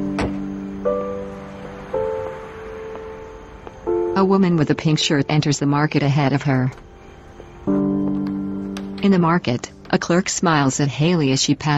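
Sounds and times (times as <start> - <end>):
car door shutting: 0.0 - 3.2
soft hiss: 0.0 - 11.7
speech: 4.2 - 6.8, 9.0 - 11.7.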